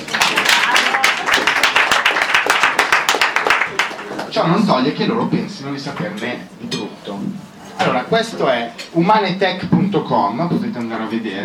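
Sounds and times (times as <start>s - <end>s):
audience applause: 0.0s - 4.3s
speech: 4.4s - 11.4s.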